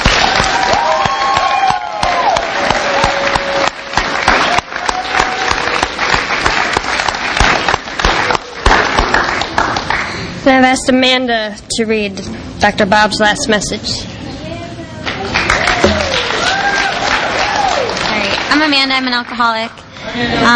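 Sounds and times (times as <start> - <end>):
audience applause: 0.0 - 10.2, 15.1 - 19.3
whistles and cheers: 0.1 - 5.9, 15.7 - 18.0
speech: 10.5 - 14.1, 18.6 - 20.5.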